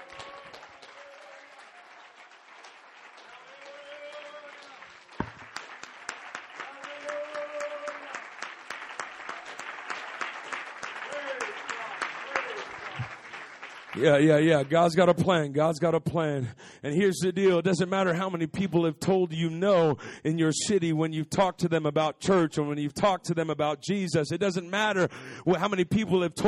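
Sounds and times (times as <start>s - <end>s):
crowd cheering voices and shouts: 0.0s - 2.0s, 3.3s - 5.3s, 6.6s - 8.3s
crowd of people clapping their hands: 0.0s - 15.4s
speech: 14.0s - 26.4s.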